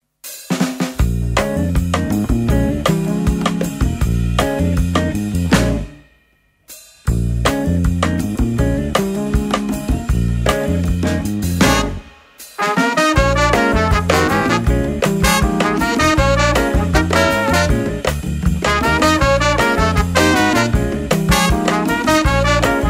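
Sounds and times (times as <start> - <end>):
blues music: 0.5 - 6.2, 6.8 - 22.8.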